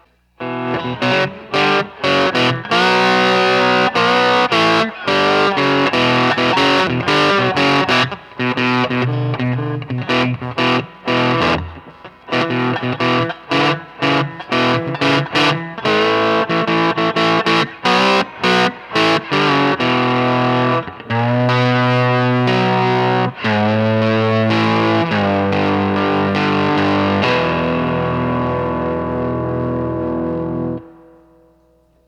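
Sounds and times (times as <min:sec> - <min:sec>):
distorted steel guitar through an Allen Chihuahua amp: 0:00.0 - 0:32.0.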